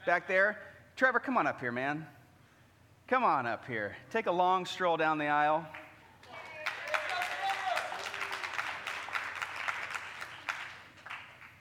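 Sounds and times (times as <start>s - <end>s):
speech: 0.0s - 2.2s, 3.1s - 5.8s
audience clapping: 5.7s - 11.5s.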